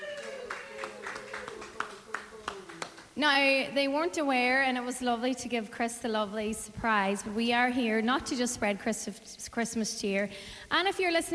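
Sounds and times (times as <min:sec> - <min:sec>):
audience applause: 0:00.0 - 0:03.1
speech: 0:03.2 - 0:11.3.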